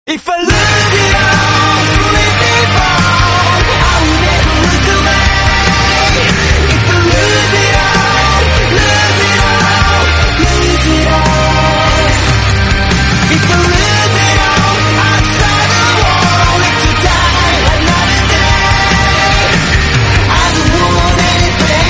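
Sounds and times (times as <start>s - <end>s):
English song: 0.1s - 21.8s.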